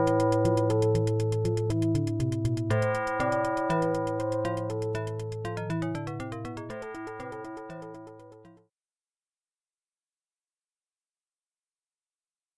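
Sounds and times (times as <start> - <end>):
music: 0.0 - 8.7.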